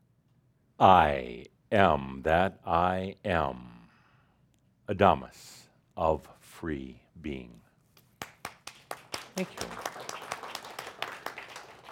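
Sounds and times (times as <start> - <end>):
speech: 0.8 - 3.7, 4.9 - 7.6, 9.4 - 10.0
audience applause: 8.4 - 11.9.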